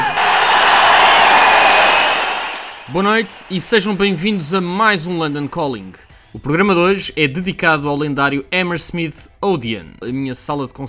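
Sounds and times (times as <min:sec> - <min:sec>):
large live crowd applause: 0:00.0 - 0:05.9
speech: 0:02.9 - 0:10.8.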